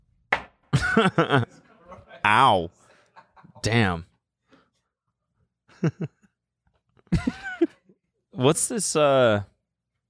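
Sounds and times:
knocking on wood: 0:00.3 - 0:00.6
laughter: 0:00.8 - 0:03.9, 0:05.7 - 0:06.3, 0:07.1 - 0:08.0
speech: 0:01.0 - 0:01.6, 0:02.2 - 0:02.8, 0:03.6 - 0:04.1, 0:05.8 - 0:06.2, 0:08.4 - 0:09.5.

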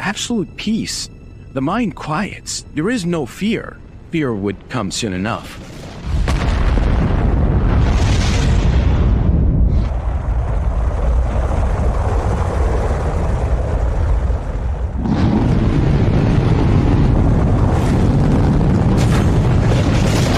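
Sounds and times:
speech: 0:00.1 - 0:05.7
rocket engine roaring at liftoff beneath a shaking capsule: 0:05.6 - 0:20.3.

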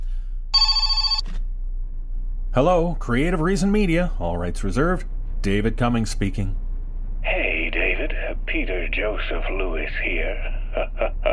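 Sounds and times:
room hum: 0:00.0 - 0:11.3
telephone bell ringing: 0:00.6 - 0:01.3
speech: 0:02.6 - 0:06.6, 0:08.1 - 0:11.3
laughter: 0:10.0 - 0:11.3.

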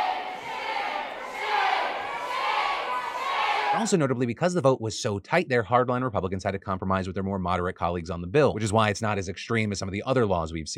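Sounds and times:
crowd in the gallery chanting shame: 0:00.0 - 0:03.9
speech: 0:03.8 - 0:10.7.

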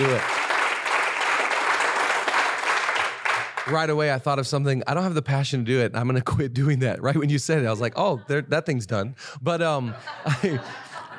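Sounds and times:
audience clapping: 0:00.0 - 0:04.3
speech: 0:00.1 - 0:00.4, 0:03.7 - 0:10.8
laughter: 0:07.8 - 0:11.1.

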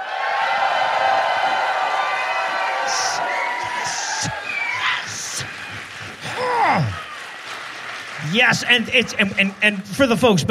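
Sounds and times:
people whooping and shouting: 0:00.0 - 0:07.6
live audience in Dallas cheering and applauding: 0:00.0 - 0:10.5
speech: 0:08.4 - 0:10.5.

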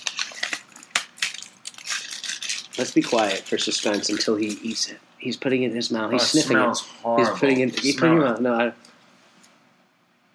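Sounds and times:
chocolate bar breaking: 0:00.0 - 0:04.1
speech: 0:02.8 - 0:08.9.

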